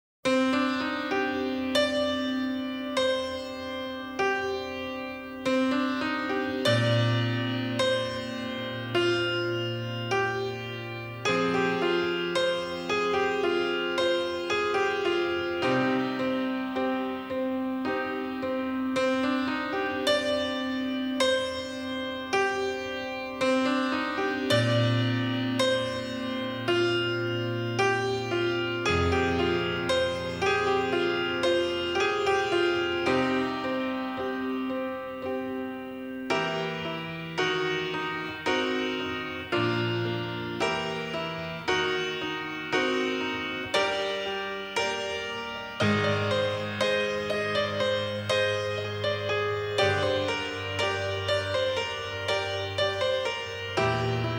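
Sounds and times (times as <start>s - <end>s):
instrumental piano music: 0.3s - 54.3s.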